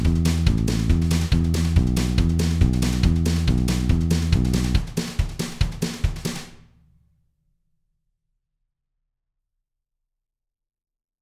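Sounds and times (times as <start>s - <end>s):
blazing fast country music: 0.0s - 5.0s.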